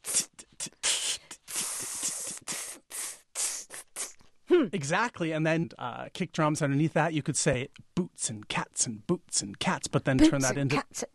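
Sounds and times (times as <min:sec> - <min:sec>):
voice beatboxing an inward open hi-hat: 0:00.0 - 0:04.7
speech: 0:04.6 - 0:11.1.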